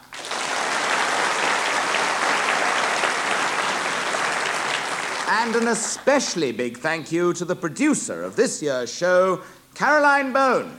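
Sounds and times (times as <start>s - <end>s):
audience applause: 0.0s - 6.4s
speech: 5.3s - 10.7s.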